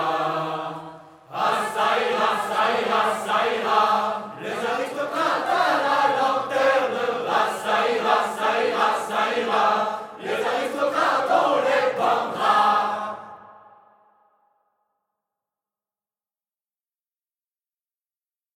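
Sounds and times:
choir singing: 0:00.0 - 0:14.2.

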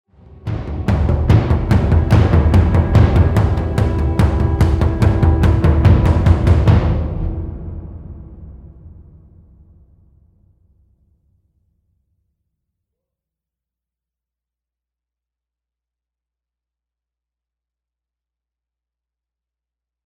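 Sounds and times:
percussion build: 0:00.2 - 0:10.5.

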